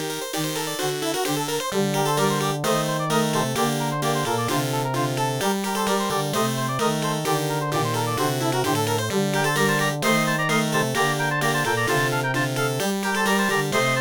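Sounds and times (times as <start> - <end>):
OPL3 FM synthesizer music: 0.1 - 13.9.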